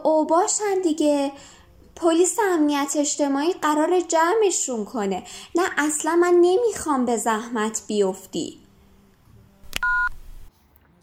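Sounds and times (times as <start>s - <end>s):
speech: 0.2s - 8.6s
two-tone telephone keypad beep: 9.8s - 10.2s.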